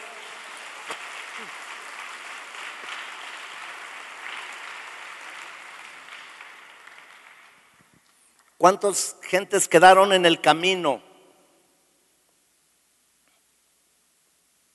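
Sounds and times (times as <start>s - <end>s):
crowd applauding: 0.0s - 8.0s
speech: 8.6s - 11.1s.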